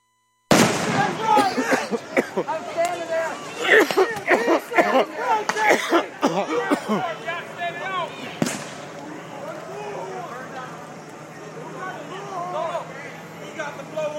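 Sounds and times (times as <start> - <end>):
Roman candle fireworks popping: 0.5 - 1.3, 8.4 - 9.1
loud chaotic crowd shouting and chattering: 0.6 - 14.1
laughter: 1.0 - 8.4.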